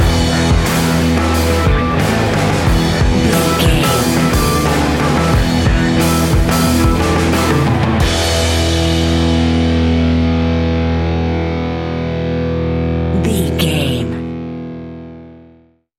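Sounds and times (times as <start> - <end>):
heavy rock drums: 0.0 - 11.4
thumping rock bass lines: 0.0 - 11.8
rock guitars: 0.0 - 15.6.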